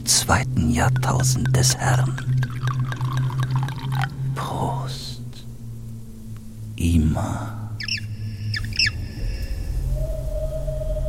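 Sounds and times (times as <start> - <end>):
low hum: 0.0 - 11.0
speech: 0.1 - 2.8, 6.8 - 7.6
red Beaujolais wine pouring from a bottle into a glass: 0.6 - 4.4.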